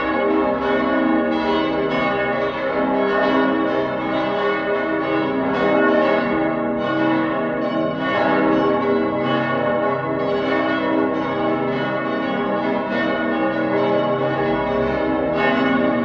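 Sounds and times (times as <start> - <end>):
cathedral bells ringing in partial peal on G sharp: 0.0 - 16.0.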